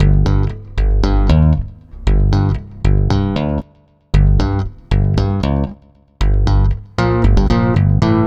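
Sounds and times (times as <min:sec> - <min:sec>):
stick bass loop: 0:00.0 - 0:08.2.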